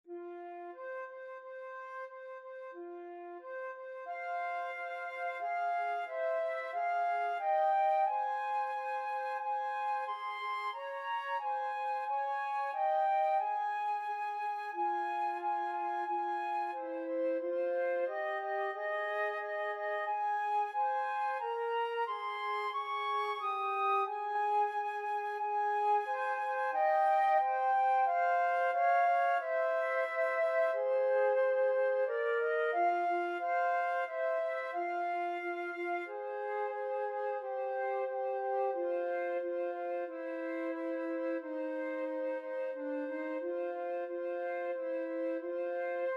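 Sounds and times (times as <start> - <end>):
flute duet playing a pavane: 0.1 - 46.1.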